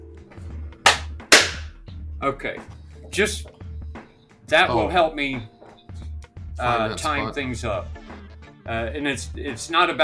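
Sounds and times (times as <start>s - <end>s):
sharp hand claps for syncing audio tracks: 0.8s - 1.8s
speech: 2.2s - 3.6s, 4.5s - 5.6s, 6.6s - 8.0s, 8.7s - 10.0s.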